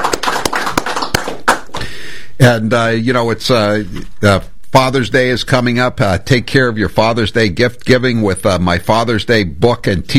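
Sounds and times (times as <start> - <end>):
studio guests clapping on a radio talk show: 0.0 - 1.9
speech: 2.4 - 10.1.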